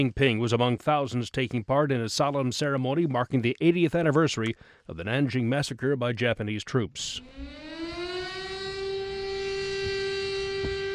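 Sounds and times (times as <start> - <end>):
speech: 0.0 - 7.7
siren for moment of silence: 7.2 - 10.9.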